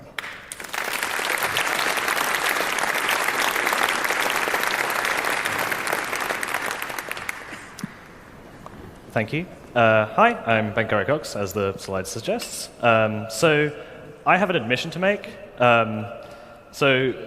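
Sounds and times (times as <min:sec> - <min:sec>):
audience applause welcoming a speaker to the stage at a talk: 0:00.0 - 0:08.4
speech: 0:09.2 - 0:17.2.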